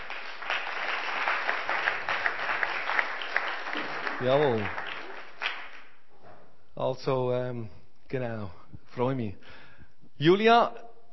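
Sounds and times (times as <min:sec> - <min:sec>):
audience applause: 0:00.0 - 0:06.0
speech: 0:04.2 - 0:04.8, 0:06.8 - 0:09.6, 0:10.2 - 0:11.1.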